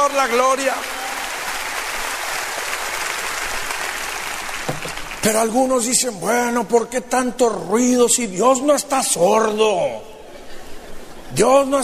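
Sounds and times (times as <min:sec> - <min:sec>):
speech: 0:00.0 - 0:01.0, 0:05.2 - 0:10.1, 0:11.3 - 0:11.8
audience applause: 0:00.0 - 0:05.3.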